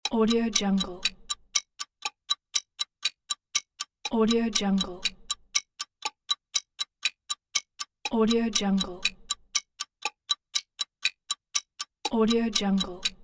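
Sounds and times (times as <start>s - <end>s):
clock: 0.0s - 13.2s.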